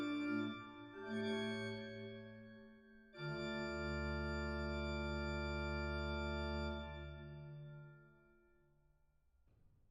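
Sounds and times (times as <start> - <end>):
virtual organ with Klein mixture stop playing baroque style: 0.0 - 2.5, 3.2 - 7.8.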